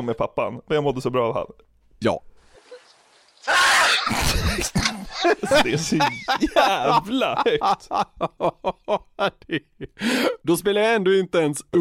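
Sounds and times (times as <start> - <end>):
speech: 0.0 - 2.3, 3.4 - 11.8
loud sneeze: 3.5 - 5.5
laughter: 4.1 - 10.0.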